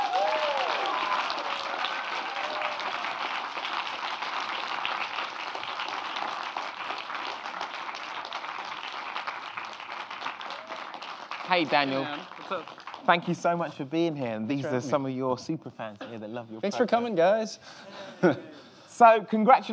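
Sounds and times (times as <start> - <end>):
audience applause: 0.0 - 13.6
speech: 11.5 - 19.7.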